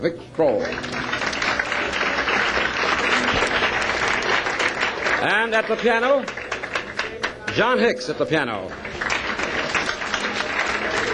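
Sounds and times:
speech: 0:00.0 - 0:01.2, 0:05.2 - 0:06.4, 0:07.6 - 0:09.1
audience clapping at a live jazz concert: 0:00.5 - 0:07.7, 0:08.5 - 0:11.1.

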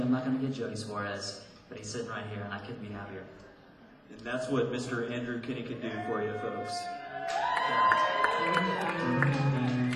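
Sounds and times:
speech: 0:00.1 - 0:03.5, 0:04.1 - 0:09.8
crowd cheering and whooping: 0:05.8 - 0:09.9.

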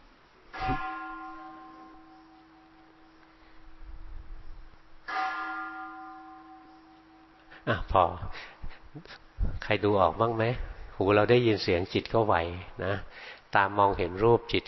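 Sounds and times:
temple bell being struck: 0:00.5 - 0:03.8, 0:05.0 - 0:08.3
speech: 0:07.6 - 0:14.6.

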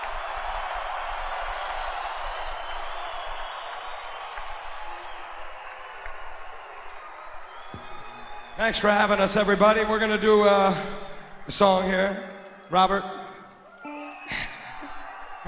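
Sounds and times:
audience applause: 0:00.0 - 0:09.2, 0:13.7 - 0:15.4
speech: 0:08.6 - 0:13.2.

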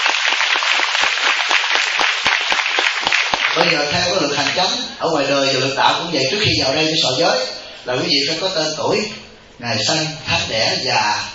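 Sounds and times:
audience applause: 0:00.0 - 0:04.8
speech: 0:03.7 - 0:11.3.

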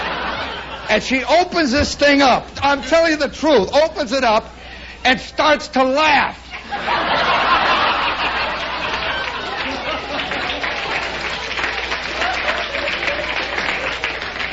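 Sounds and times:
audience laughter: 0:00.0 - 0:01.0, 0:06.5 - 0:14.5
speech: 0:00.9 - 0:07.2
audience applauding: 0:07.5 - 0:14.5.

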